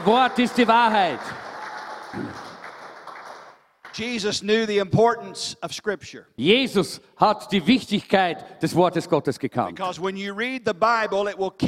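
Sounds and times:
speech: 0:00.0 - 0:01.4, 0:04.0 - 0:11.6
audience applause: 0:00.0 - 0:04.2.

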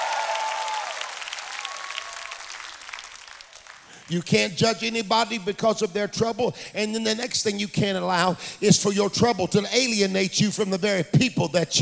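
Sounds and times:
church congregation applauding and cheering in response to a preacher: 0:00.0 - 0:04.9
speech: 0:04.1 - 0:11.7.

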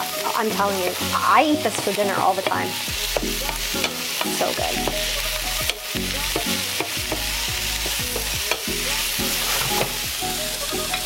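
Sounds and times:
food sauteing in a pan: 0:00.0 - 0:11.0
speech: 0:00.4 - 0:05.3
stirring scrapes in a pan: 0:09.2 - 0:10.0.

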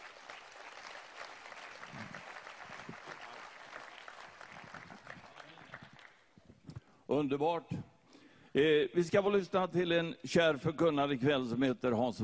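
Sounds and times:
audience applause: 0:00.0 - 0:06.2
speech: 0:07.1 - 0:07.9, 0:08.5 - 0:12.2.

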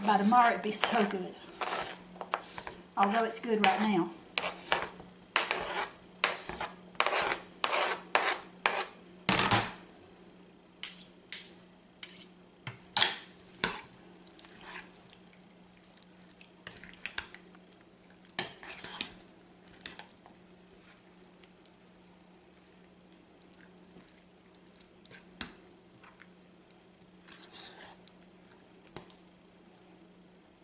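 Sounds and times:
thick creamy spinach dip mixture stirred briskly in a bowl: 0:00.0 - 0:08.8, 0:13.6 - 0:15.3, 0:18.2 - 0:29.3
speech: 0:00.1 - 0:01.8, 0:03.0 - 0:04.2.

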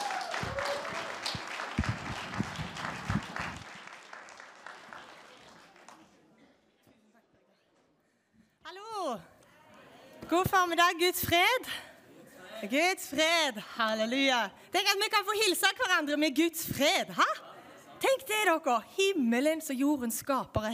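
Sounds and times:
crowd applause: 0:00.0 - 0:06.3
speech: 0:10.3 - 0:11.9, 0:12.6 - 0:17.4, 0:18.0 - 0:20.7.

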